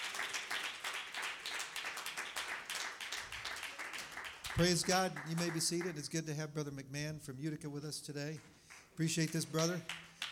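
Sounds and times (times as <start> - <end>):
seated audience clapping hands: 0.0 - 6.1, 8.4 - 10.2
speech: 4.6 - 10.0.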